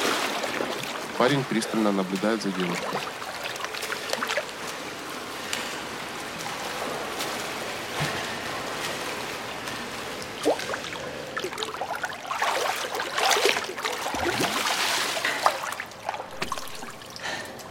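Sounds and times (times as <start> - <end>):
young woman and young man swimming and splashing in a pool: 0.0 - 17.6
speech: 1.2 - 3.3.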